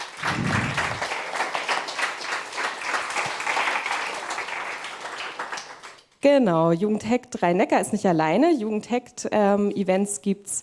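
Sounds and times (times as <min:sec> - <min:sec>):
audience applause: 0:00.0 - 0:06.0
speech: 0:06.2 - 0:10.6.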